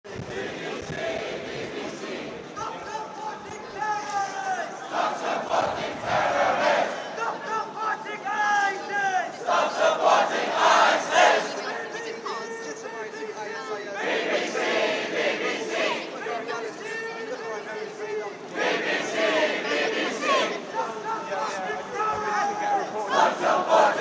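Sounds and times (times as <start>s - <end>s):
Iraqis protesting outside Broadcasting House: 0.0s - 23.9s.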